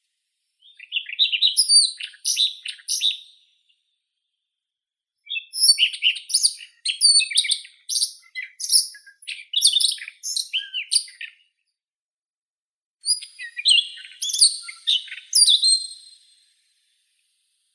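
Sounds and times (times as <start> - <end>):
Siberian rubythroat Luscinia calliope singing: 0.6 - 3.5, 5.3 - 11.4, 13.0 - 16.5.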